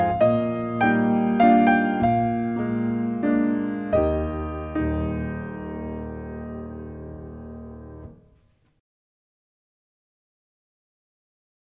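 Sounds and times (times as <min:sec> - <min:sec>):
intermediate ballet adage music: 0:00.0 - 0:08.5.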